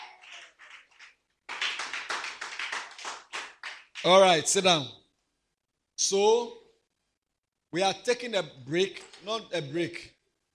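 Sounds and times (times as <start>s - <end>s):
audience clapping: 0.0s - 4.2s
speech: 4.0s - 5.0s, 6.0s - 6.6s, 7.7s - 10.2s.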